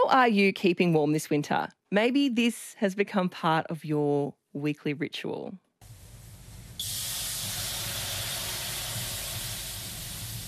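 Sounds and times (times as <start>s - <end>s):
speech: 0.1s - 5.6s
water hissing on hot sauna rocks: 5.8s - 10.4s.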